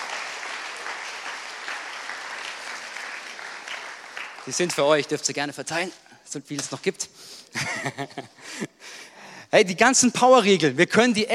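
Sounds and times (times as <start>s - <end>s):
audience applause for stage team: 0.0s - 5.1s
speech: 4.4s - 8.7s, 9.5s - 11.3s
laughter: 7.5s - 8.8s.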